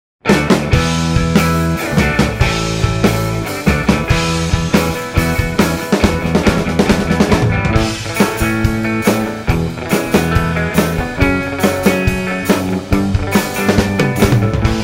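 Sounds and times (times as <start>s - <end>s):
British Invasion style music: 0.2s - 14.8s.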